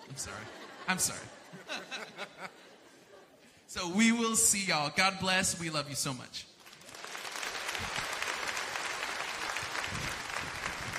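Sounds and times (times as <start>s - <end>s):
laughter: 0.0s - 3.4s
speech: 0.1s - 2.7s, 3.7s - 6.5s, 7.8s - 8.0s
audience applause: 6.6s - 10.9s.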